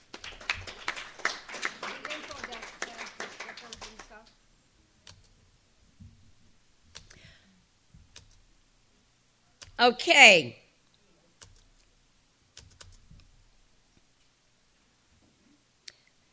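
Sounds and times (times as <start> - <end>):
audience applause: 0.0 - 4.3
speech: 9.8 - 10.6.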